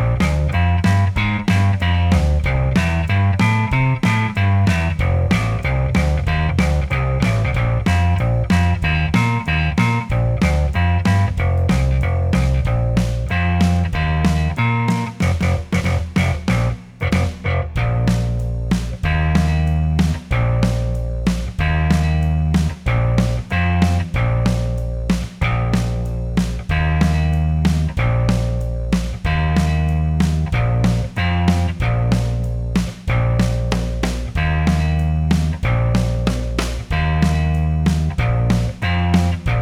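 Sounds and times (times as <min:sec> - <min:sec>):
classic bass: 0:00.0 - 0:39.5.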